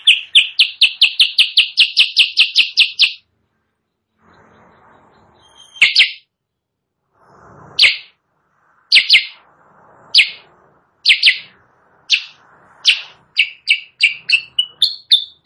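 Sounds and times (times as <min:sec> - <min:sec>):
sooty-headed bulbul chirping, training song for caged birds: 0:00.0 - 0:03.2, 0:05.4 - 0:06.3, 0:07.8 - 0:08.2, 0:08.9 - 0:09.4, 0:10.2 - 0:10.4, 0:11.0 - 0:15.4.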